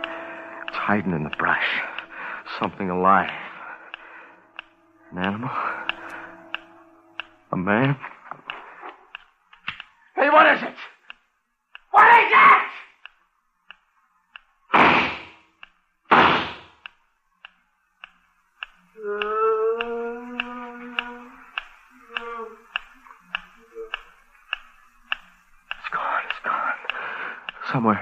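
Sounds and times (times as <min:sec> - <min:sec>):
wavering tonal cry: 0:00.0 - 0:09.1, 0:18.9 - 0:24.7
quiet ticking: 0:00.0 - 0:14.7, 0:15.4 - 0:16.1, 0:16.7 - 0:28.0
speech: 0:00.9 - 0:01.9, 0:02.5 - 0:03.5, 0:05.1 - 0:06.0, 0:07.5 - 0:08.2, 0:10.3 - 0:10.9
gunshots: 0:14.7 - 0:15.4, 0:16.1 - 0:16.8.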